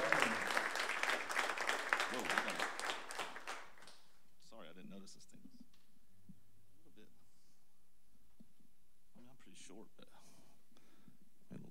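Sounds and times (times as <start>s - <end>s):
audience applauding a performer on stage: 0.0s - 4.1s.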